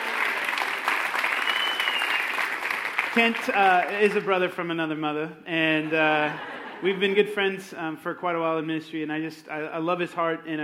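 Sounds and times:
audience applause: 0:00.0 - 0:04.3
speech: 0:03.2 - 0:10.6
laughter: 0:05.6 - 0:07.2.

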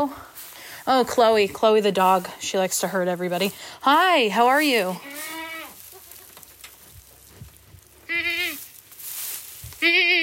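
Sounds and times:
speech: 0:00.0 - 0:00.3, 0:00.9 - 0:05.4, 0:09.8 - 0:10.2
goats bleating: 0:05.0 - 0:06.2, 0:08.0 - 0:08.6, 0:09.8 - 0:10.2.

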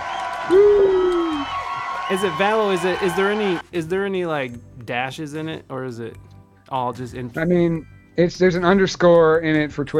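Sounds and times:
crowd cheering: 0:00.0 - 0:03.7
speech: 0:02.1 - 0:09.9.

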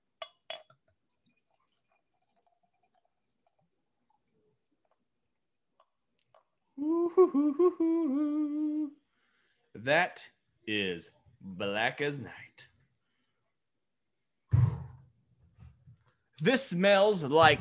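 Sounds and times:
glass clinks: 0:00.2 - 0:00.8
beer pouring into a glass: 0:00.2 - 0:05.0
speech: 0:06.8 - 0:09.0, 0:09.8 - 0:12.7, 0:16.4 - 0:17.6.

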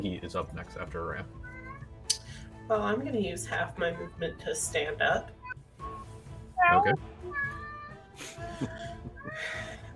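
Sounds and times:
speech: 0:00.0 - 0:01.5, 0:02.7 - 0:05.9, 0:06.6 - 0:07.6, 0:08.2 - 0:09.8
person imitating a cat's meow during a tabletop role-playing game: 0:06.6 - 0:08.1.

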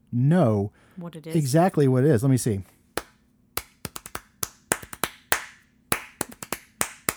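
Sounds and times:
speech: 0:00.1 - 0:02.8
hands clapping a march rhythm: 0:03.0 - 0:07.1.

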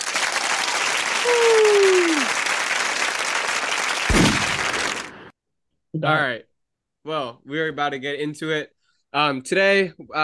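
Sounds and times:
applause sound effect: 0:00.0 - 0:05.3
speech: 0:01.2 - 0:02.4, 0:06.0 - 0:10.2.

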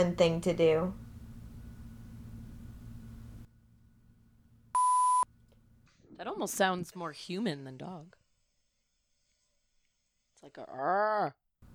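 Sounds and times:
speech: 0:00.0 - 0:01.0, 0:06.2 - 0:08.2, 0:10.4 - 0:11.4
electronic device beeping: 0:04.8 - 0:05.2.

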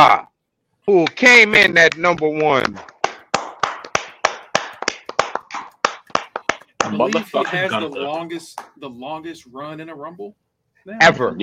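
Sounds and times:
speech: 0:00.8 - 0:02.9, 0:06.9 - 0:11.4
hand claps: 0:01.0 - 0:08.8.

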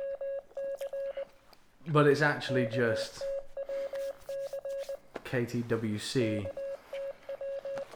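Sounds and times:
Morse code beeps: 0:00.0 - 0:01.2, 0:02.4 - 0:05.0, 0:06.4 - 0:07.9
speech: 0:01.9 - 0:03.3, 0:05.3 - 0:06.6.

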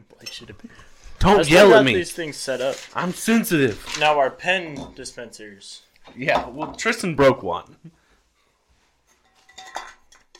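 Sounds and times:
empty beer cans being moved: 0:00.2 - 0:05.1, 0:09.1 - 0:10.3
speech: 0:00.2 - 0:08.0.

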